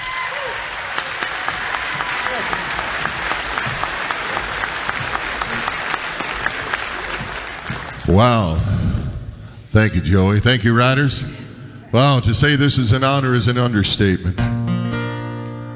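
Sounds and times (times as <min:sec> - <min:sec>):
crowd applauding a musician brought on stage: 0:00.0 - 0:08.7
speech: 0:08.1 - 0:08.8, 0:09.7 - 0:14.6.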